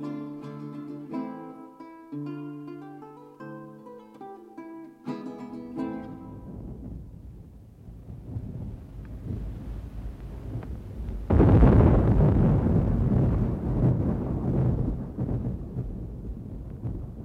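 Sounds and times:
thunderstorm thunder: 5.9 - 17.2.

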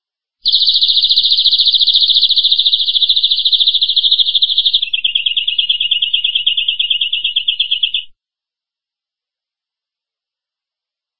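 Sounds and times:
domestic canary trill: 0.5 - 8.1.

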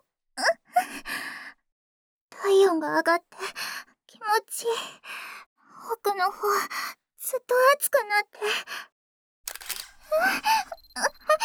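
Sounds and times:
speech: 2.7 - 3.4, 4.3 - 5.2, 5.9 - 8.9, 10.1 - 11.4
camera shutter clicking: 9.5 - 10.1.

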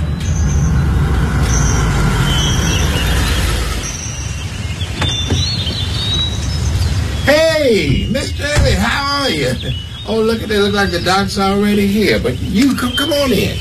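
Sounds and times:
car engine rumbling as it pulls up at a house driveway: 0.0 - 13.5
car door shutting: 4.9 - 6.0
speech: 9.6 - 13.5.

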